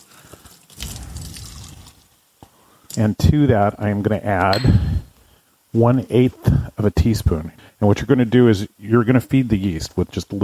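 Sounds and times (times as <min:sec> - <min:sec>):
warm water poured into a bowl: 0:00.0 - 0:02.2
speech: 0:03.0 - 0:05.0, 0:05.7 - 0:10.4.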